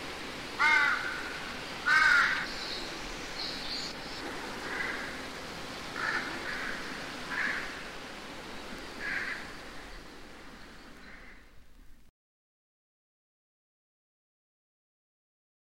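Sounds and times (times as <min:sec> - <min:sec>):
leaves rustling in woods: 0:00.0 - 0:12.1
birds in woods: 0:00.5 - 0:12.0
crows in woods: 0:00.6 - 0:02.5, 0:04.6 - 0:05.2, 0:06.0 - 0:07.9, 0:09.0 - 0:09.6, 0:11.0 - 0:11.5.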